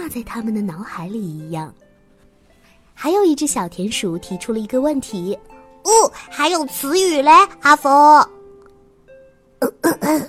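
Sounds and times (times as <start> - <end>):
speech: 0.1 - 1.8, 3.0 - 8.3, 9.6 - 10.2
throat clearing: 9.6 - 10.2.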